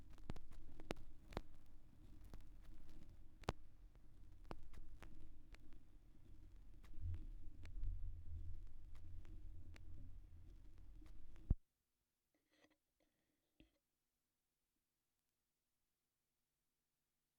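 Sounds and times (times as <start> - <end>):
vinyl record noise: 0.0 - 11.6.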